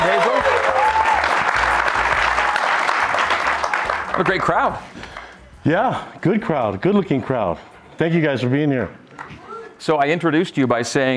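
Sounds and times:
audience applause: 0.0 - 5.3
speech: 4.2 - 5.0, 5.6 - 11.1.

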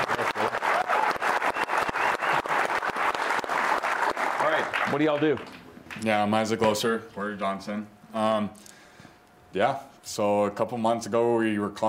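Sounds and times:
audience applause for a scholar: 0.0 - 6.0
speech: 4.9 - 8.7, 9.5 - 11.8.

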